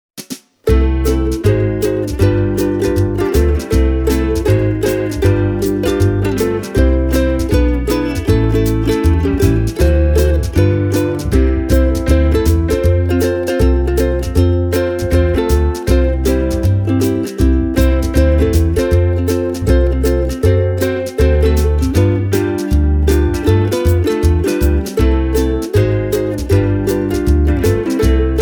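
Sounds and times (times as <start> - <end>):
Kala KA 15S ukulele: 0.2 - 28.4.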